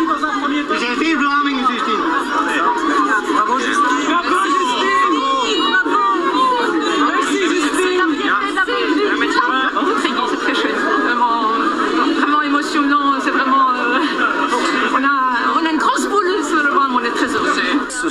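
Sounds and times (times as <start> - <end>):
large crowd chatter greeting an arrival at the airport: 0.0 - 18.0
shouts and laughter: 0.8 - 15.6.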